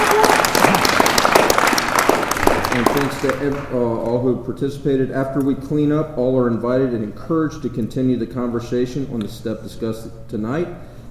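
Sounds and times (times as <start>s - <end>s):
audience applause for a panel at an evening meeting: 0.0s - 3.8s
speech: 2.8s - 10.9s.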